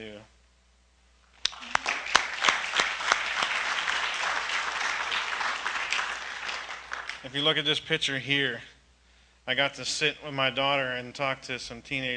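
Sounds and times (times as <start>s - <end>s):
audience applause: 1.4s - 7.3s
speech: 7.2s - 8.7s, 9.5s - 12.1s.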